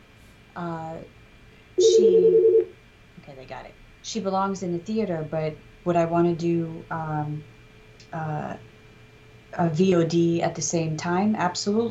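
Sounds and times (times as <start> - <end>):
speech: 0.6 - 1.2, 2.0 - 2.5, 3.3 - 7.5, 8.1 - 8.7, 9.5 - 11.9
mobile phone ringing: 1.8 - 2.7.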